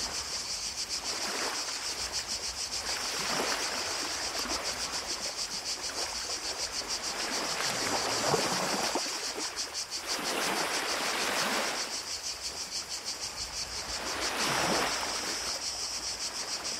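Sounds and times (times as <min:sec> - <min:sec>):
cicadas: 0:00.0 - 0:16.7
ocean: 0:00.0 - 0:16.7.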